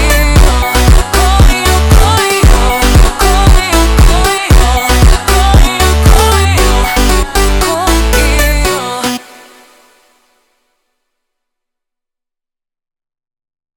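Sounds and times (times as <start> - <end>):
slowed montagem music: 0.0 - 10.7.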